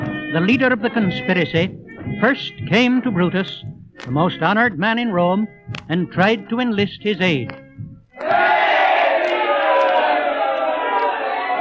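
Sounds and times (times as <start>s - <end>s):
speech: 0.3s - 7.6s
large crowd shouting and roaring: 8.2s - 11.5s.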